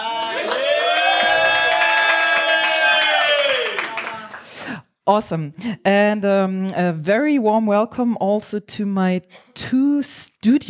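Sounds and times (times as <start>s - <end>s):
live audience applause: 0.0s - 4.5s
speech: 5.1s - 10.6s.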